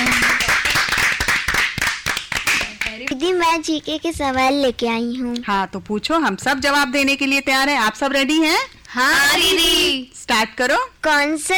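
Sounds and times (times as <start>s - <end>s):
group of people clapping: 0.0s - 3.2s
speech: 3.6s - 11.5s.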